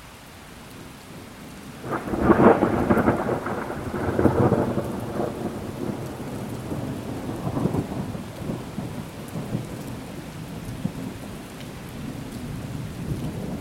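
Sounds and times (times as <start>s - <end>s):
rain: 0.0s - 13.5s
thunder: 1.8s - 11.2s.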